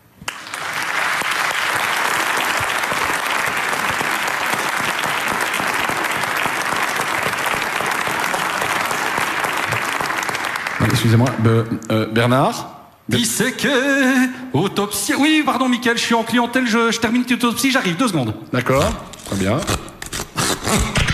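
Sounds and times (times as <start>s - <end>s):
audience applause: 0.2s - 11.6s
speech: 11.0s - 19.8s, 20.7s - 21.1s.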